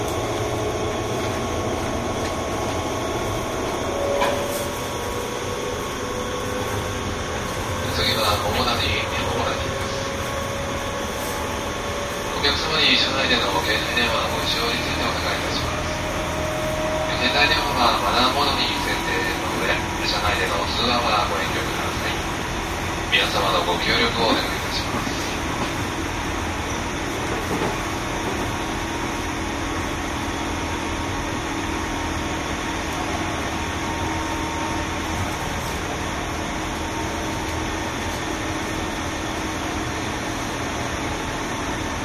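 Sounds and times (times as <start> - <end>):
JR 201 series train rumble: 0.0 - 42.0.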